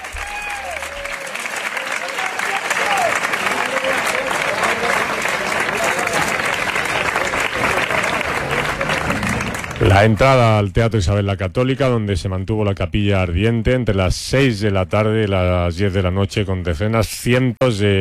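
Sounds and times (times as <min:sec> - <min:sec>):
crowd clapping as coffin enters: 0:00.0 - 0:10.6
speech: 0:10.0 - 0:17.9.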